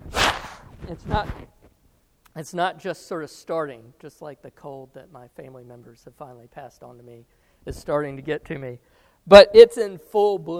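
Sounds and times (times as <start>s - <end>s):
person blowing nose: 0.0s - 0.8s
speech: 0.9s - 1.6s, 2.4s - 10.5s.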